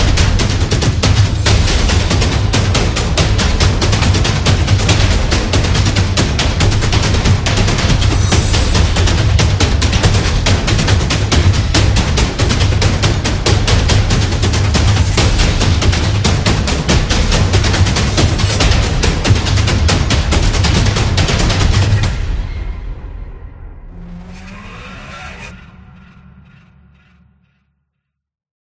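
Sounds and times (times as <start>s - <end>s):
African drum: 0.0s - 22.4s.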